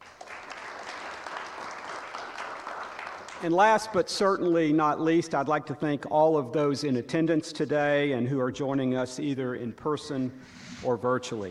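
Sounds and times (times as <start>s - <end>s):
audience applause: 0.0s - 3.5s
speech: 3.4s - 11.4s.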